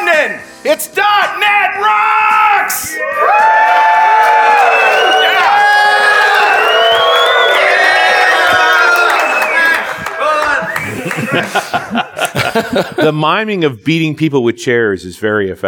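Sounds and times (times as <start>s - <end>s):
speech: 0.2s - 3.9s, 11.3s - 12.0s, 12.6s - 15.6s
loud live crowd cheering and shouting: 1.0s - 11.5s
laughter: 8.6s - 13.3s.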